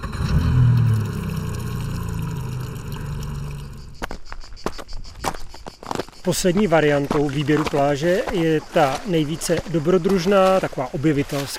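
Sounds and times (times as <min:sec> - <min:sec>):
boat motor running: 0:00.0 - 0:04.1
speech: 0:06.3 - 0:11.5.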